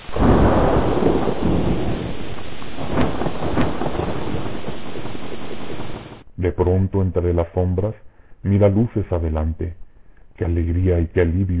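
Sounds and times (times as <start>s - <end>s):
thunderstorm with rain: 0.0s - 6.2s
speech: 6.6s - 9.8s, 10.4s - 11.5s.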